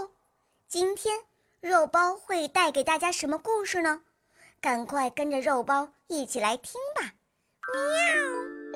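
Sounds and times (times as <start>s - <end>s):
speech: 0.7s - 8.6s
cat meowing: 7.7s - 8.5s.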